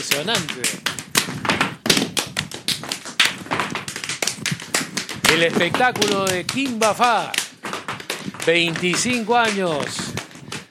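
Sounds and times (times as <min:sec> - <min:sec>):
speech: 0:00.0 - 0:01.4, 0:05.3 - 0:07.4, 0:08.4 - 0:10.2
zapateo tap dance footwork: 0:00.0 - 0:10.6.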